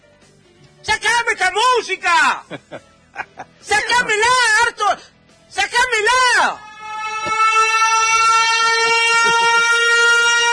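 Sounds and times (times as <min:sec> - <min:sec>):
speech: 0:01.6 - 0:06.7
laughter: 0:02.4 - 0:04.4
loud horn blaring: 0:06.6 - 0:10.5.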